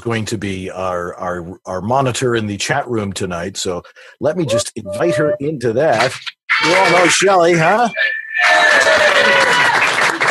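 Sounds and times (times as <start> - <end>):
speech: 0.0 - 9.9
applause: 8.4 - 10.2.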